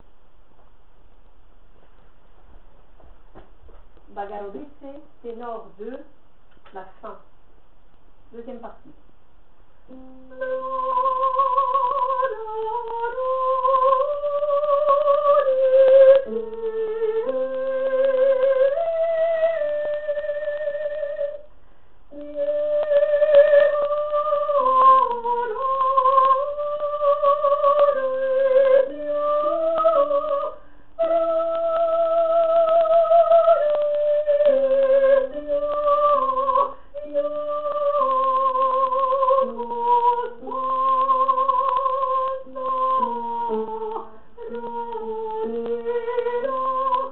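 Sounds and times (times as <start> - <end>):
tenor singing: 9.9 - 21.5, 22.1 - 47.0.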